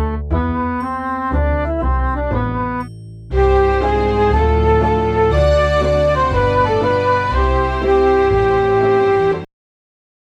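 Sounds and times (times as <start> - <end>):
light show tune: 0.0 - 9.5.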